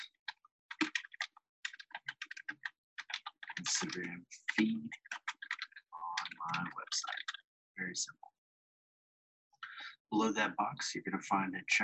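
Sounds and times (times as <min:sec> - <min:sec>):
fingers typing on a computer keyboard: 0:00.0 - 0:07.4
speech: 0:03.6 - 0:05.1, 0:06.4 - 0:07.2, 0:07.8 - 0:08.3, 0:10.1 - 0:11.8.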